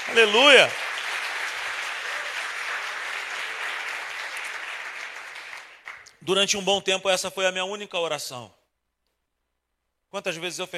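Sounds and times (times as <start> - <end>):
audience applause: 0.0 - 6.2
speech: 0.1 - 0.8, 6.3 - 8.6, 10.1 - 10.7.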